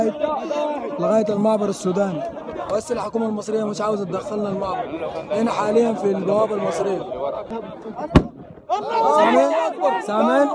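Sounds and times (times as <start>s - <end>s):
speech: 0.0s - 10.5s
gunshot from a weapon at an Egyptian border gate near the Sudanese crossing: 8.1s - 8.6s.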